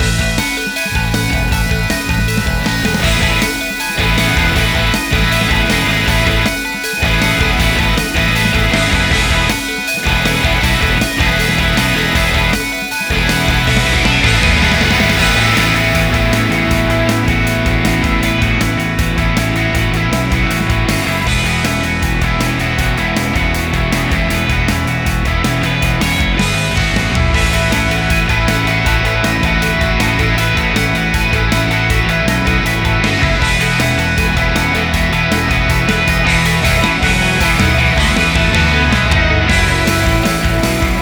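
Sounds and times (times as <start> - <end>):
battle background music: 0.0 - 41.0.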